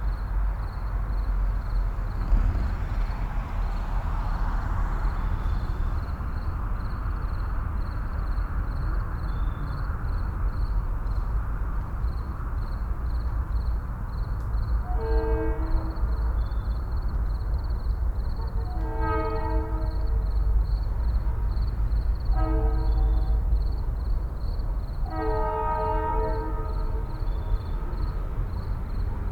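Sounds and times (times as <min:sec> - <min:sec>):
light suburban traffic: 0:00.0 - 0:25.1, 0:25.8 - 0:29.3
suburban night crickets chirping: 0:00.0 - 0:29.3.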